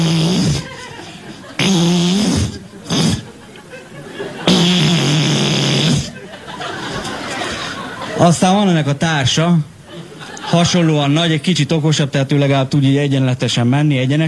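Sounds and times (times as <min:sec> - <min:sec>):
voice imitating a large beetle buzzing in flight: 0:00.0 - 0:03.3, 0:04.5 - 0:06.2
laughter: 0:00.6 - 0:01.8, 0:02.4 - 0:08.6, 0:09.8 - 0:11.7
speech: 0:08.2 - 0:09.7, 0:10.5 - 0:14.2.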